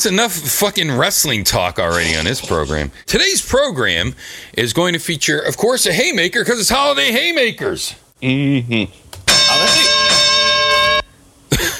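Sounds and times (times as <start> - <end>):
speech: 0.0 - 9.9
versus bell start tone: 9.3 - 11.2.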